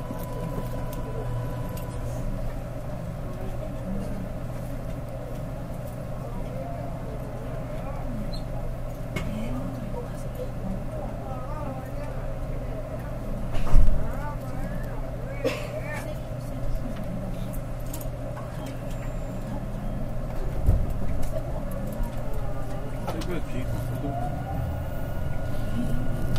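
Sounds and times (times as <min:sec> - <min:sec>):
thin whining tones: 0:00.0 - 0:02.7, 0:22.2 - 0:26.3
faint voices murmuring: 0:00.0 - 0:26.3
train rumble and hum between Rinku Town and Namba: 0:00.0 - 0:26.3.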